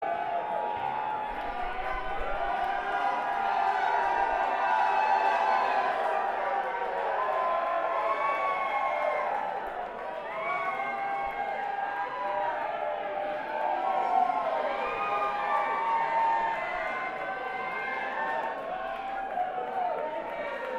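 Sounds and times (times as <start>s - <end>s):
crowd banter: 0.0s - 20.7s.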